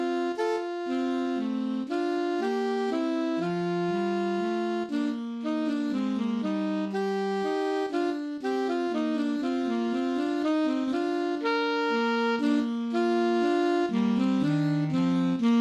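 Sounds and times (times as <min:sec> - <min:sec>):
easy saxophone duets: 0:00.0 - 0:15.5.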